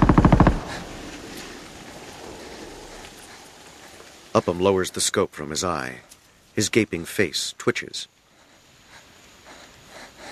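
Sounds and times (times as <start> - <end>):
German machine gun firing in a battle: 0.0 - 1.2
speech: 4.4 - 8.2.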